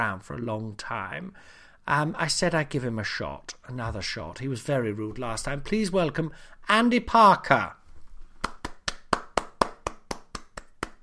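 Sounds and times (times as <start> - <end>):
speech: 0.0 - 7.8
one person clapping hands: 8.4 - 11.0.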